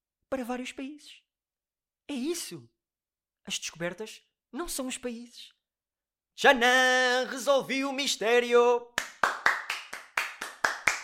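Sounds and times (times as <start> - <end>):
speech: 0.3 - 1.2, 2.1 - 2.8, 3.4 - 5.6, 6.4 - 9.0
hand clapping: 8.9 - 11.0.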